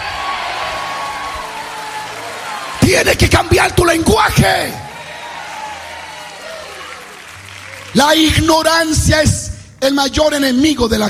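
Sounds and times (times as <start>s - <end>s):
audience shouting amen: 0.0s - 3.1s, 4.0s - 7.9s
speech: 2.9s - 4.8s, 7.9s - 11.0s.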